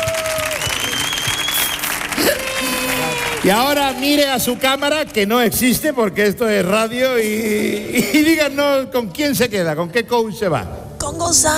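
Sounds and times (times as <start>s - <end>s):
audience applause: 0.0s - 5.7s
speech: 3.4s - 11.5s.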